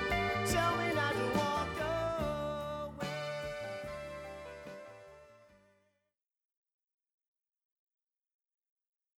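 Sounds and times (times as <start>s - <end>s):
person singing: 0.0s - 3.8s.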